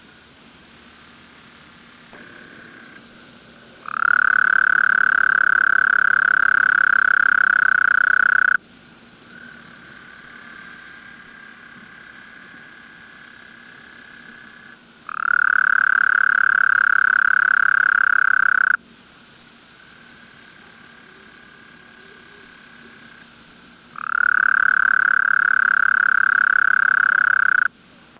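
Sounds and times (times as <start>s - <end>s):
Gulf coast toad Bufo valliceps calling: 2.2s - 8.7s, 13.8s - 27.7s.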